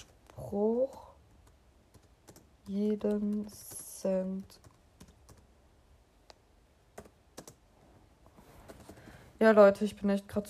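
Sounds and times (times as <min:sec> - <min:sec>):
speech: 0:00.0 - 0:01.1, 0:02.7 - 0:04.7, 0:09.4 - 0:10.4
typing on a laptop keyboard: 0:00.0 - 0:05.5, 0:07.0 - 0:07.6.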